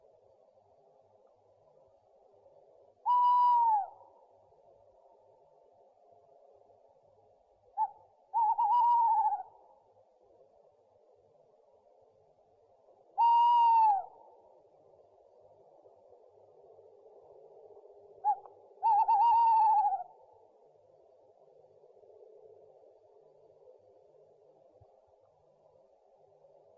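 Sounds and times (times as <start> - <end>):
owl calls: 3.0 - 4.1, 7.8 - 9.6, 13.2 - 14.2, 18.2 - 20.2.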